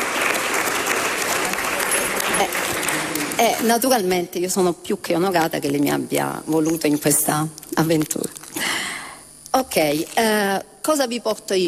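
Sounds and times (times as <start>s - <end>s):
audience applause: 0.0s - 3.5s
speech: 2.4s - 2.6s, 3.4s - 8.4s, 9.6s - 11.6s.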